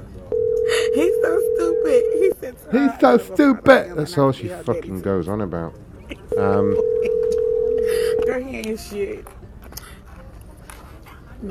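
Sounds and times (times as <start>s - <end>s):
telephone tone as a call is placed to a personal phone: 0.3s - 2.4s, 6.3s - 8.4s
speech: 2.4s - 7.3s, 8.3s - 9.4s.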